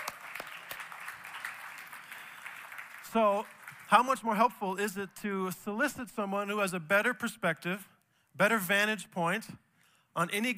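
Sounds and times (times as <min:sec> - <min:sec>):
audience applause: 0:00.0 - 0:04.0
speech: 0:03.1 - 0:09.6, 0:10.2 - 0:10.5.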